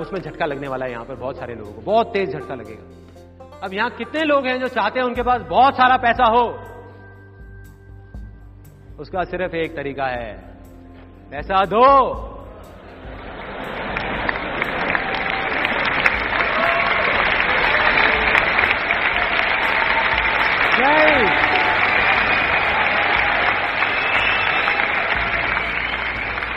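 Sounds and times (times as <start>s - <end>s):
speech: 0.0s - 6.7s, 9.0s - 10.5s, 11.3s - 12.3s
audience clapping: 13.4s - 26.5s.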